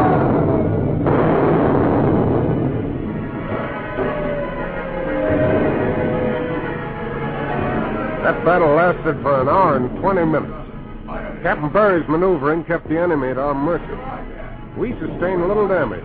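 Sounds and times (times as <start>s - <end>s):
cannons firing a ship's broadside: 0.2s - 10.4s
speech: 8.5s - 10.6s, 11.4s - 14.2s, 14.8s - 16.0s.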